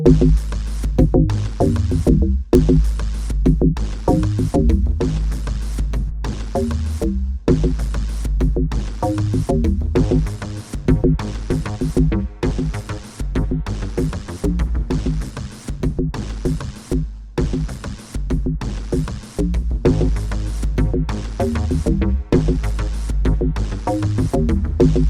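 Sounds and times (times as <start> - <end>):
random drum beats without bass: 0.1 - 25.0.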